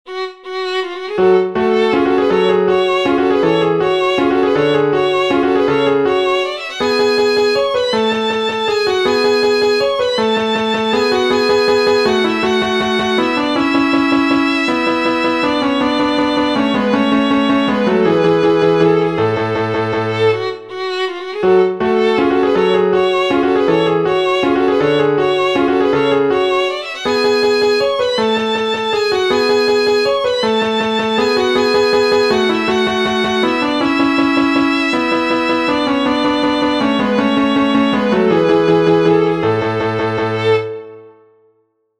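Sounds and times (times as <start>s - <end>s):
violin sonata movement: 0.1s - 41.1s.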